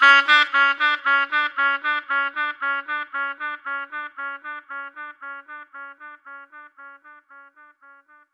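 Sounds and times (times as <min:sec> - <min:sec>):
dub saxophone: 0:00.0 - 0:08.3.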